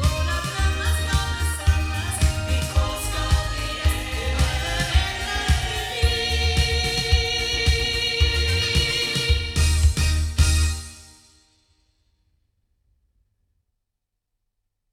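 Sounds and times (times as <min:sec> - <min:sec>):
loudspeaker playback recorded with Oktava MC219: 0:00.0 - 0:10.9.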